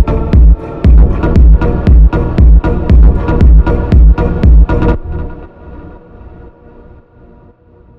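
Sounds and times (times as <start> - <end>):
Brazilian phonk music: 0.0 - 5.7.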